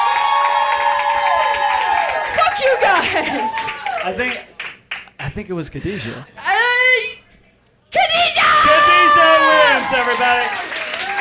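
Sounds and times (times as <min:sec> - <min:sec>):
people cheering with high shouts and whoops: 0:00.0 - 0:04.2, 0:08.2 - 0:11.2
group clapping: 0:00.0 - 0:05.3, 0:09.4 - 0:11.2
speech: 0:02.7 - 0:04.5, 0:05.2 - 0:06.4, 0:09.8 - 0:10.7.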